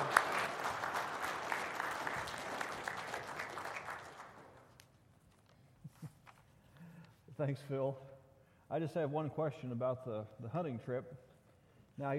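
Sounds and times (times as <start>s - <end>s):
congregation applauding at a morning church service: 0.0s - 4.8s
speech: 7.4s - 8.1s, 8.7s - 11.3s, 12.0s - 12.1s.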